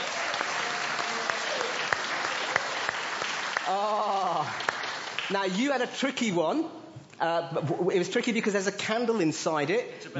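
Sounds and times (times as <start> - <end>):
audience clapping: 0.0 - 5.8
speech: 5.3 - 10.1.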